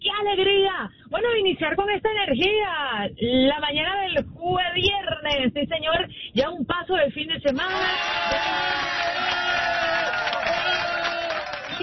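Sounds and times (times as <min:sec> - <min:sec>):
speech: 0:00.2 - 0:09.4
cheering: 0:07.6 - 0:11.8
applause: 0:08.3 - 0:11.8.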